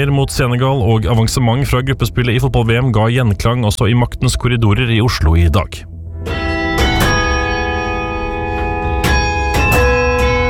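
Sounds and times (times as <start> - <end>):
speech: 0.0 - 6.4
city hall carillon bells playing a slow melody: 6.3 - 10.4.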